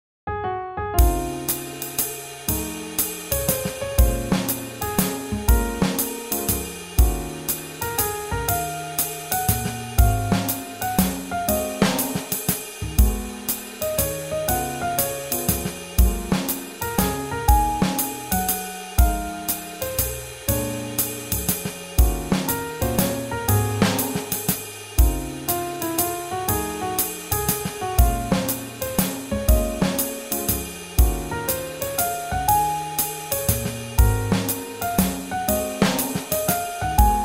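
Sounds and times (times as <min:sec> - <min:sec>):
swing jazz: 0:01.0 - 0:37.2.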